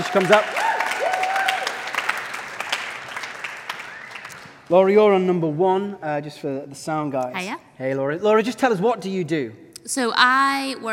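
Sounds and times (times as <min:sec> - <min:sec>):
speech: 0:00.0 - 0:00.6, 0:04.7 - 0:10.9
audience clapping: 0:00.0 - 0:04.9.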